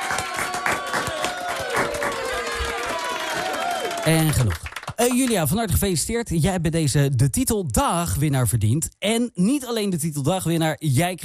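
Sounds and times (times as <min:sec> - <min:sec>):
whistles and cheers: 0:00.0 - 0:04.4
crowd applauding: 0:00.0 - 0:05.5
speech: 0:04.1 - 0:11.2.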